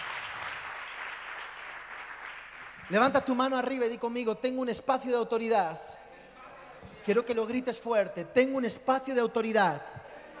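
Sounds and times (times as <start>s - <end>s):
audience applause: 0.0s - 3.0s
speech: 2.9s - 6.0s, 7.1s - 10.1s.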